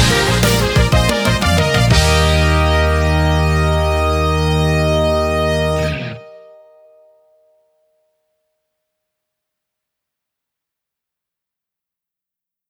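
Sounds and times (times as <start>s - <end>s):
county residents' song: 0.0s - 6.8s.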